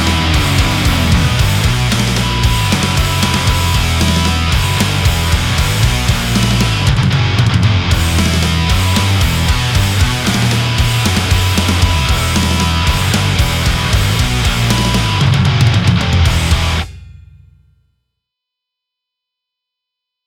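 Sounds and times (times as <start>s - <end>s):
high gain guitar: 0.0s - 17.6s.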